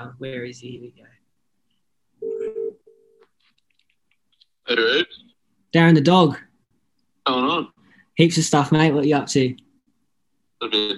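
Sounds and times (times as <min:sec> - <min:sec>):
speech: 0:00.0 - 0:01.2, 0:04.7 - 0:06.5, 0:07.2 - 0:09.6, 0:10.6 - 0:10.9
phone call ringing tones on the line: 0:02.2 - 0:03.2.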